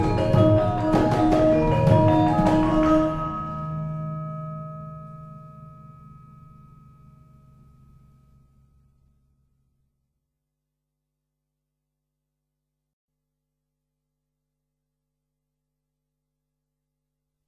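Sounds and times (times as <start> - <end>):
Javanese gamelan music: 0.0 - 8.0.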